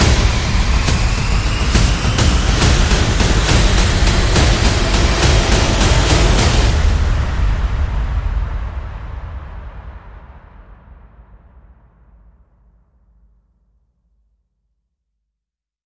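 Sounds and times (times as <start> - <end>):
sound effects: 0.0 - 8.4
percussion: 0.0 - 12.4.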